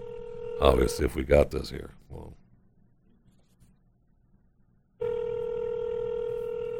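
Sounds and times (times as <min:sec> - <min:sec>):
telephone line tone: 0:00.0 - 0:01.0, 0:05.0 - 0:06.7
speech: 0:00.6 - 0:02.4.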